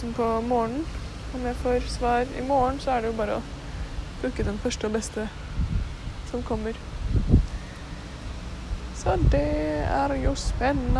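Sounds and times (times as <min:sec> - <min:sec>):
speech: 0:00.0 - 0:03.6, 0:04.2 - 0:07.3, 0:09.0 - 0:10.9
wind blowing on microphone outdoors: 0:04.2 - 0:10.9.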